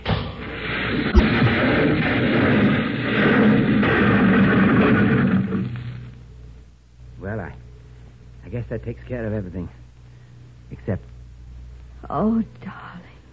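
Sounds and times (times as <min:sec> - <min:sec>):
explosion blasting a cable, 1940s radio drama effect: 0:00.1 - 0:06.2
speech: 0:08.7 - 0:09.8, 0:10.8 - 0:11.1, 0:12.0 - 0:13.0.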